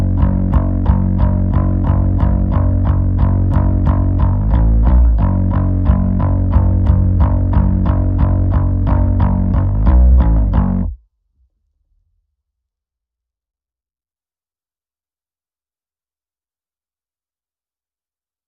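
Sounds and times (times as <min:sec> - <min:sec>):
bass: 0:00.0 - 0:11.0.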